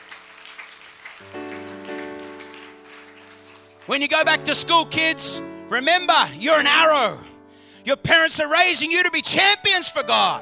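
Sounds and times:
audience applauding: 0:00.0 - 0:04.7
speech: 0:01.2 - 0:01.4, 0:03.9 - 0:10.4.

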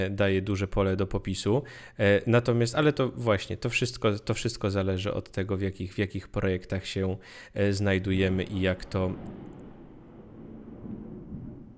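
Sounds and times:
speech: 0:00.0 - 0:09.7
thunder clap: 0:07.9 - 0:11.7.

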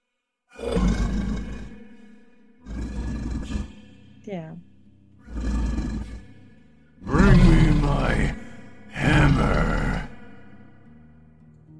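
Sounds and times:
beast howling in the dark: 0:00.6 - 0:03.9, 0:07.0 - 0:10.8
speech: 0:04.3 - 0:04.7.

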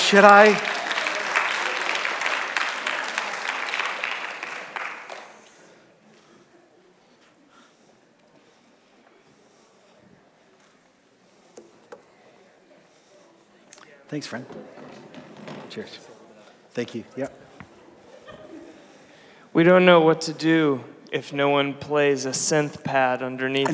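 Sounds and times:
room of people clapping: 0:00.0 - 0:05.9
speech: 0:00.1 - 0:00.7, 0:14.1 - 0:14.9, 0:15.7 - 0:16.1, 0:16.8 - 0:17.4, 0:19.6 - 0:23.7
laughter: 0:17.2 - 0:19.3.

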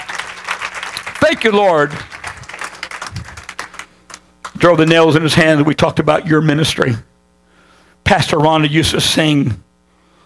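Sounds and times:
audience clapping hands: 0:00.0 - 0:05.2
speech: 0:01.2 - 0:02.2, 0:04.6 - 0:07.1, 0:08.1 - 0:09.6.

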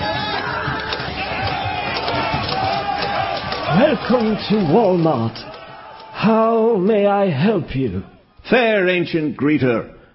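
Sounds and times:
soldiers clashing in a radio drama battle, crowd shouting and scuffling: 0:00.0 - 0:07.0
speech: 0:03.8 - 0:05.5, 0:06.2 - 0:10.0.

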